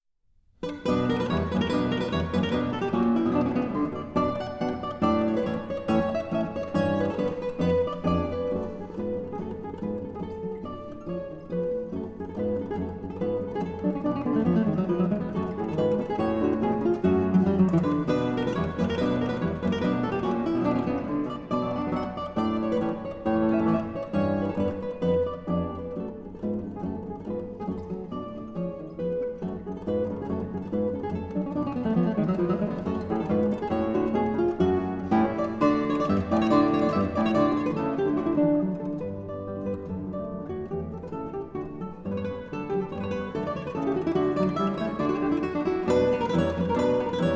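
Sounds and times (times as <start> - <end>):
trio sonata allegro movement: 0.7 - 47.3.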